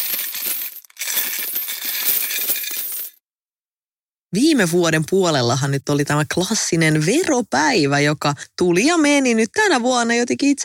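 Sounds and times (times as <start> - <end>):
jingling coins money sound effect: 0.0 - 3.2
speech: 4.3 - 10.6.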